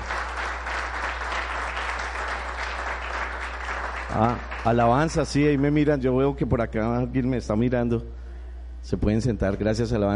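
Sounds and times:
audience applause: 0:00.0 - 0:05.6
speech: 0:04.1 - 0:08.2, 0:08.8 - 0:10.1.

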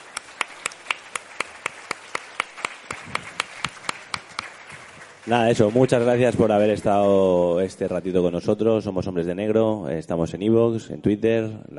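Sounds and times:
applause: 0:00.0 - 0:07.4
speech: 0:05.2 - 0:11.7.

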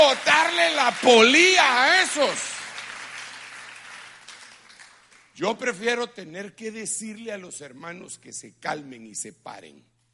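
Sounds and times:
audience applauding: 0:00.0 - 0:05.4
speech: 0:00.1 - 0:02.6, 0:05.4 - 0:09.9.

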